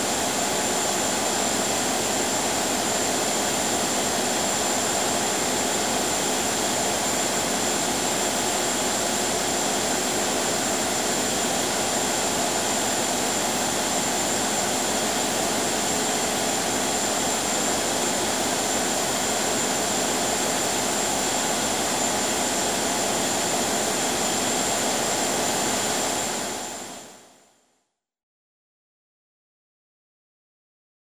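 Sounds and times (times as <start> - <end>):
ship engine room machinery: 0.0 - 27.0.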